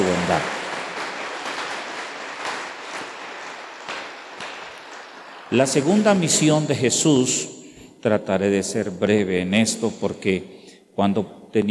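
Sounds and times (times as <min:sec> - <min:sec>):
audience applause: 0:00.0 - 0:07.0
speech: 0:00.3 - 0:00.6, 0:05.5 - 0:11.7.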